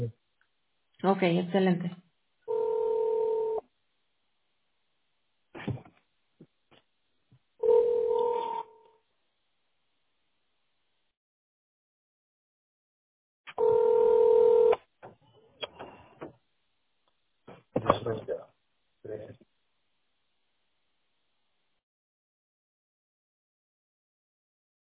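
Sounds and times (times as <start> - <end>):
speech: 1.0 - 2.0
telephone line tones while placing a call to a business partner: 2.5 - 3.6, 7.6 - 8.8, 13.6 - 14.8.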